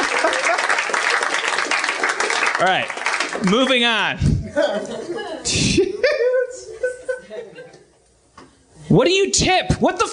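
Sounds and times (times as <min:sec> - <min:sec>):
laughter: 0:00.0 - 0:00.8, 0:04.4 - 0:08.0
crowd applause: 0:00.0 - 0:03.9
speech: 0:02.6 - 0:06.1, 0:08.9 - 0:10.1.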